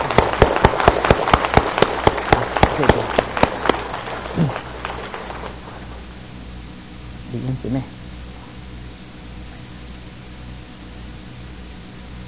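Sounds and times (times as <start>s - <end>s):
audience clapping hands: 0.0s - 6.0s
speech: 2.8s - 3.2s, 7.4s - 8.1s.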